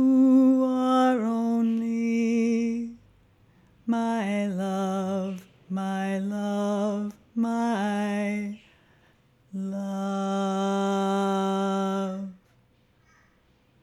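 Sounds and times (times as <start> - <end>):
tenor singing: 0.0 - 3.0, 3.9 - 8.7, 9.5 - 12.4.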